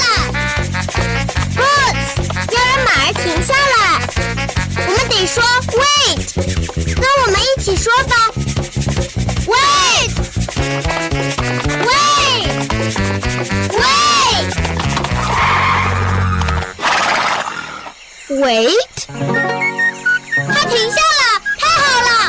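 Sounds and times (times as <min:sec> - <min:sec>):
lively music: 0:00.0 - 0:16.8, 0:19.1 - 0:22.2
cartoon horse neighing: 0:11.8 - 0:18.0
speech: 0:18.4 - 0:18.9.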